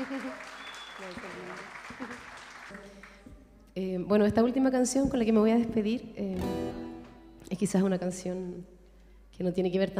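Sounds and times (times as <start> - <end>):
speech: 0.0 - 2.2, 3.8 - 6.5, 7.6 - 8.8, 9.4 - 9.9
audience applause: 0.0 - 3.2.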